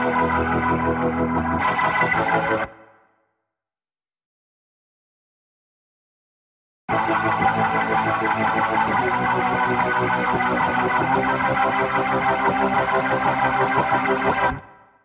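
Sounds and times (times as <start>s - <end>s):
guitar: 0.0s - 2.9s, 6.9s - 14.7s.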